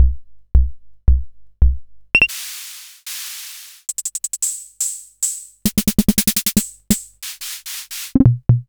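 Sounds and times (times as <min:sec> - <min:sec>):
Hammond Auto Vari 64 organ rhythm: 0:02.2 - 0:08.6.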